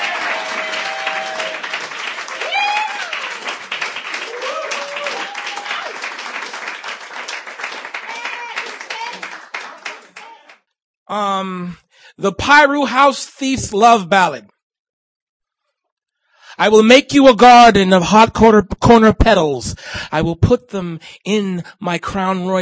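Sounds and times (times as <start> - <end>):
audience applause at a poetry reading: 0.0 - 10.6
speech: 11.4 - 14.5, 16.6 - 22.6.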